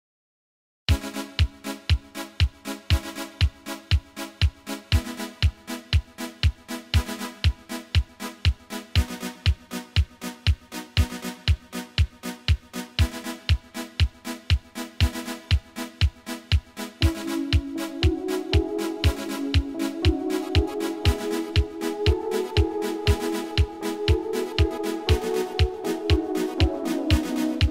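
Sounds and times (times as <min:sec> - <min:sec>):
instrumental Italo disco music: 0:00.9 - 0:27.7.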